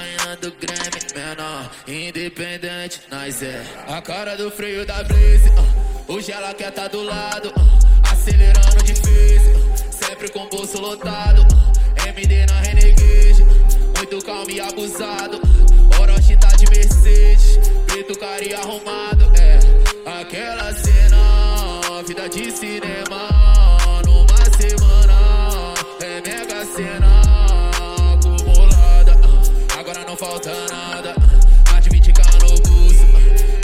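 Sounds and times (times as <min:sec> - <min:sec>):
deep bass: 0:04.9 - 0:06.0, 0:07.6 - 0:10.0, 0:11.3 - 0:14.0, 0:15.4 - 0:17.9, 0:19.2 - 0:19.9, 0:20.6 - 0:21.8, 0:23.3 - 0:25.7, 0:27.0 - 0:29.7, 0:31.2 - 0:33.6.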